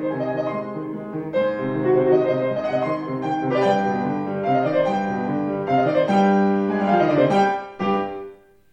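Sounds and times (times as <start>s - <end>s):
piano: 0.0s - 8.7s.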